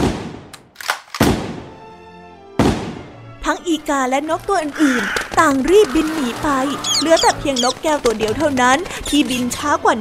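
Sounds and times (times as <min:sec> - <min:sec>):
hunter's gunshot: 0:00.0 - 0:00.5, 0:01.2 - 0:01.8, 0:02.6 - 0:03.2
speech: 0:03.5 - 0:09.9.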